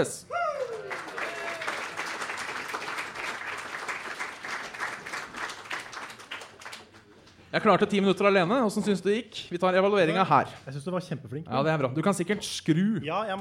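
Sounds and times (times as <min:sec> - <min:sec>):
speech: 0:00.0 - 0:00.4, 0:07.5 - 0:13.3
audience applauding: 0:00.6 - 0:07.5.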